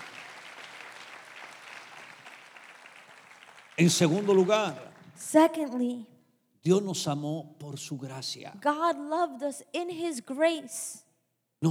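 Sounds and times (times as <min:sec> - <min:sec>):
applause: 0:00.0 - 0:05.7
speech: 0:03.8 - 0:11.0, 0:11.6 - 0:11.7.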